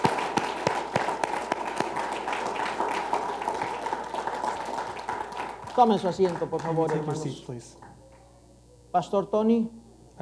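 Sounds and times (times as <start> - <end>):
church congregation applauding: 0.0 - 7.9
speech: 5.8 - 7.8, 8.9 - 10.2.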